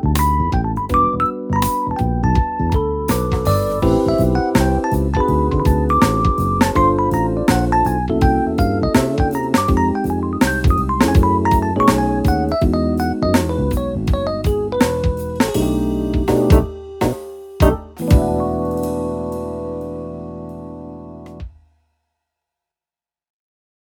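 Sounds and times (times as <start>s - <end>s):
electric piano: 0.0s - 21.4s.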